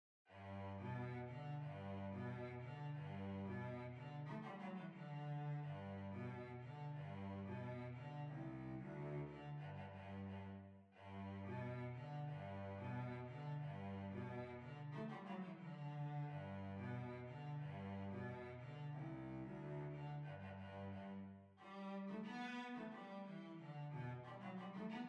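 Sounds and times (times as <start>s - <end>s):
violoncello: 0.3s - 25.0s.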